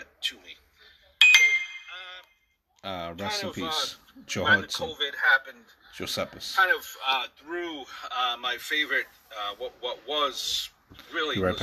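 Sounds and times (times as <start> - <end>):
speech: 0.2 - 0.5, 2.8 - 11.6
notification bell ding: 1.2 - 2.2.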